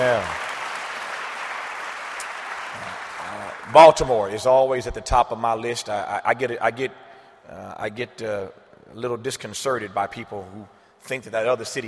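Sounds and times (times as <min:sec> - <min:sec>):
speech: 0:00.0 - 0:00.4, 0:03.7 - 0:11.8
crowd applause: 0:00.0 - 0:04.3.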